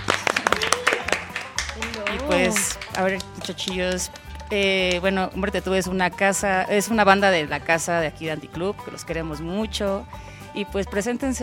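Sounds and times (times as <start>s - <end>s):
live hand clapping in a studio booth: 0.0s - 5.3s
speech: 1.8s - 11.4s.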